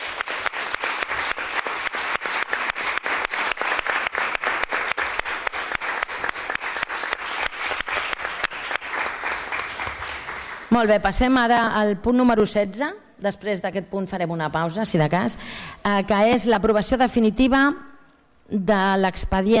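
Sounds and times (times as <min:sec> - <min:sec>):
applause: 0:00.0 - 0:10.9
speech: 0:10.8 - 0:17.9, 0:18.5 - 0:19.5.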